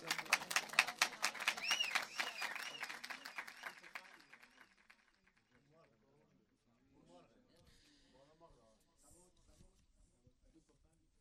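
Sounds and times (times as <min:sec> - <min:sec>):
audience clapping during a devotional praise recitation: 0:00.0 - 0:05.8.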